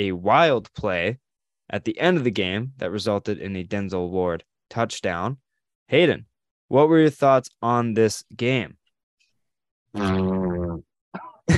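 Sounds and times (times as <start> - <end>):
speech: 0.0 - 8.8, 9.9 - 10.9
loud fart: 10.0 - 11.5.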